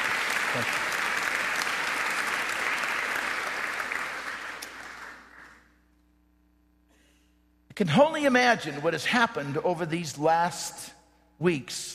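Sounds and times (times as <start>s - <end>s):
audience applause: 0.0s - 5.7s
speech: 0.5s - 0.9s, 7.8s - 11.9s.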